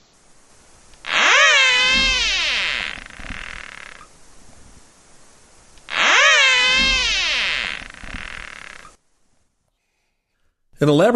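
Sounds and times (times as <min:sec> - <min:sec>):
caterpillar whistling: 0:01.1 - 0:04.1, 0:05.9 - 0:08.9.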